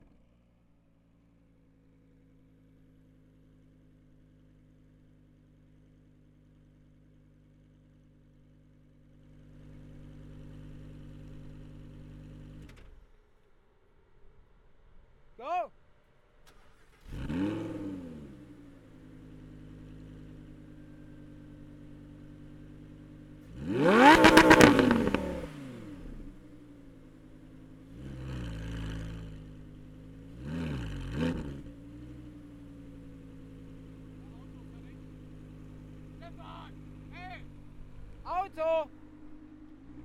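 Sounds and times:
Lamborghini engine starting up and kicking down: 1.6s - 13.1s, 16.4s - 40.0s.

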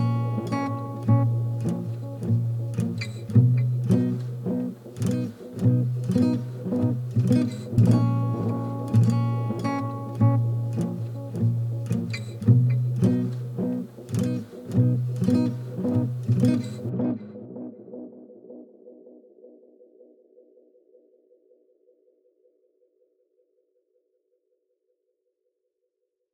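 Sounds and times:
minor chord progression on guitar with echo: 0.0s - 19.2s.

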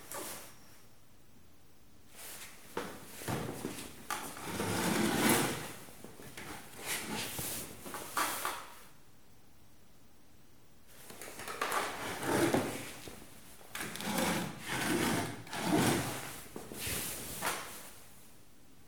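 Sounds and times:
wooden chair: 2.8s - 8.7s, 11.1s - 17.8s.

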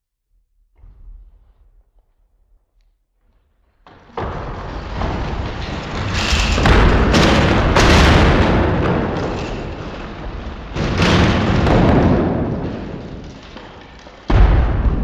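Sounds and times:
processed earth demolition crack: 3.2s - 14.9s.

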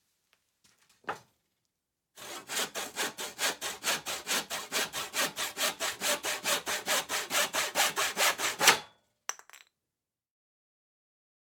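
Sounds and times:
hand saw sawing: 2.2s - 8.9s.

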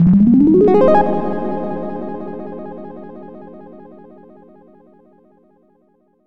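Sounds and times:
cute little sparkly synth rise: 0.2s - 3.1s.

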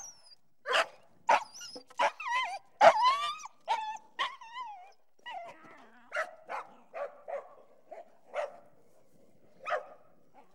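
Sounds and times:
dog yelping whines: 0.0s - 5.6s
dog barking: 0.7s - 2.2s, 6.1s - 8.7s, 9.6s - 10.5s.

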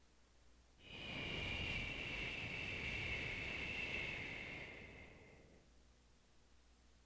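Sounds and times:
high wind: 0.8s - 5.7s.

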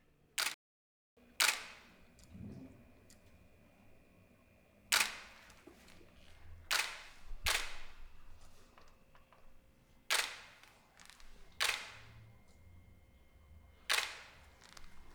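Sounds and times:
DSLR camera single-shot shutter crunches in a roomy space: 1.4s - 2.0s, 4.9s - 9.5s, 10.1s - 12.6s, 13.8s - 15.1s.

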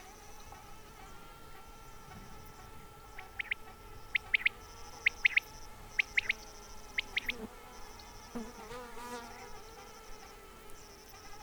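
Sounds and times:
quail calling: 2.5s - 7.5s.

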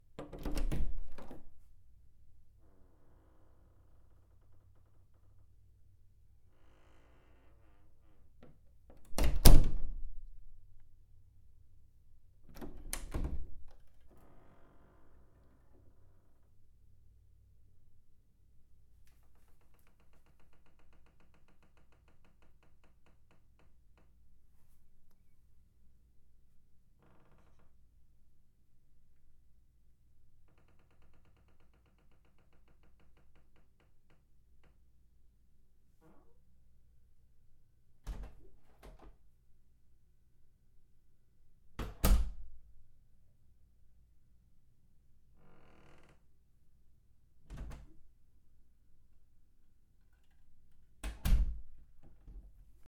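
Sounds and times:
house doors opening and closing: 0.2s - 1.5s, 8.9s - 10.1s, 12.5s - 14.5s, 38.1s - 39.2s, 41.8s - 42.6s, 47.5s - 48.0s, 51.0s - 52.7s.

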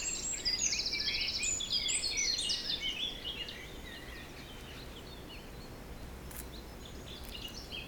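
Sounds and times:
birds chirping: 0.2s - 7.8s.

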